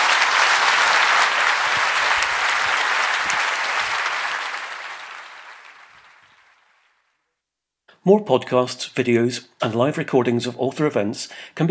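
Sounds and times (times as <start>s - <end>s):
audience applause: 0.0s - 7.0s
speech: 8.1s - 11.7s.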